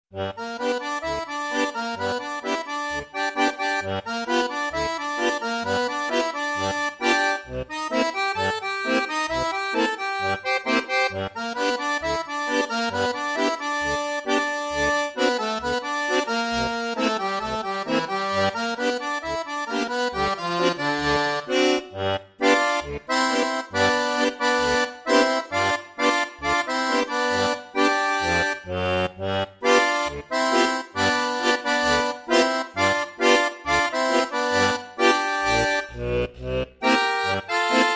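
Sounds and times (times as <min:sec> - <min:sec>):
Cajun squeezebox boogie: 0:00.1 - 0:37.9.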